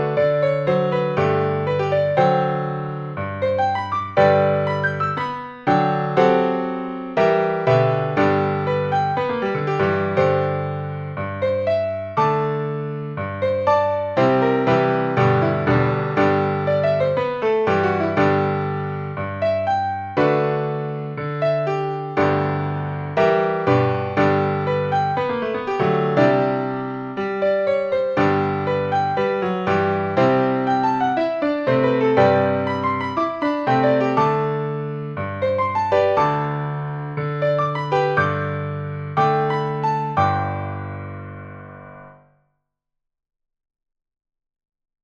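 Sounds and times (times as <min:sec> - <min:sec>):
piano rag: 0:00.0 - 0:42.2.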